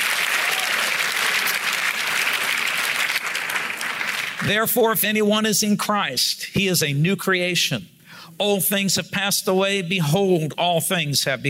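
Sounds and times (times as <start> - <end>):
audience hand clapping: 0.0 - 4.5
speech: 4.4 - 11.4.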